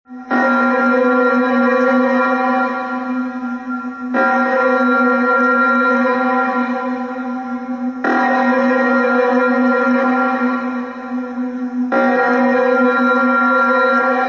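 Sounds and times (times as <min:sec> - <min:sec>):
alarm: 0:00.1 - 0:14.2.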